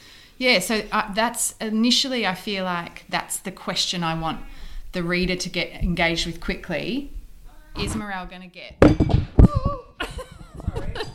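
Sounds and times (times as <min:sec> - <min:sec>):
speech: 0:00.4 - 0:07.2, 0:07.8 - 0:09.8
microphone knocked off a table: 0:08.8 - 0:09.8
laughter: 0:10.0 - 0:11.1.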